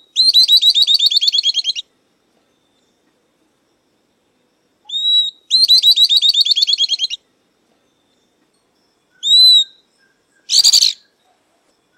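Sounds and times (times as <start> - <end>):
Southern beardless-tyrannulet singing whistle and chirps: 0.0 - 1.9, 4.8 - 7.3, 9.1 - 11.9.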